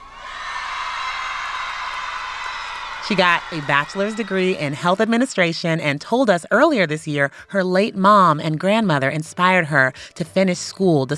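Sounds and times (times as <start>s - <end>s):
whoops: 0.0s - 4.8s
large crowd cheering and screaming wildly at graduation: 0.0s - 5.1s
speech: 3.0s - 11.1s.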